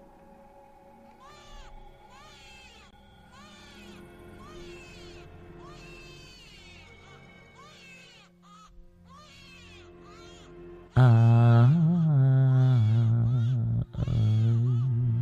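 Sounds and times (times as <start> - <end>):
baby crying shrilly: 1.2 - 14.9.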